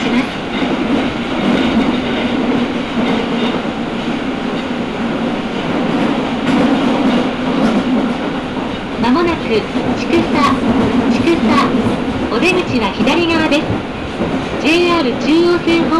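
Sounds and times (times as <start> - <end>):
subway train running between stations: 0.0 - 15.9
speech: 12.4 - 14.0, 14.6 - 15.9.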